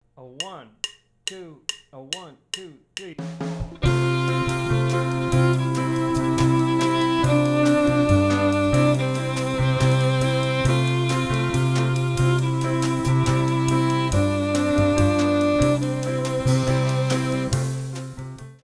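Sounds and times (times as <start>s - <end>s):
inner melody in whole notes: 3.8s - 18.4s.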